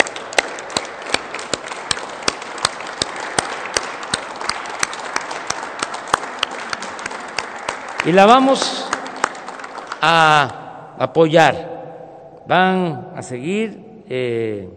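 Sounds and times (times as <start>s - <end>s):
crowd applauding: 0.0s - 10.6s
speech: 8.1s - 8.8s, 10.0s - 11.7s, 12.5s - 14.7s.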